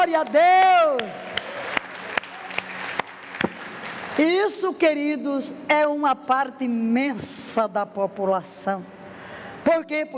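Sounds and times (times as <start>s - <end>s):
speech: 0.0s - 1.3s, 4.2s - 9.0s, 9.6s - 10.1s
audience applauding: 0.2s - 4.2s.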